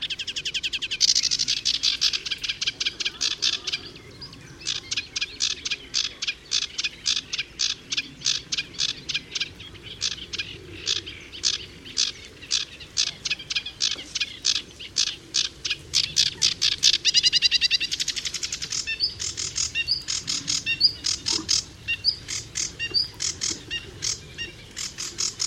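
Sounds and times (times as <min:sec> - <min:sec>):
sedge warbler song: 0:00.0 - 0:25.4.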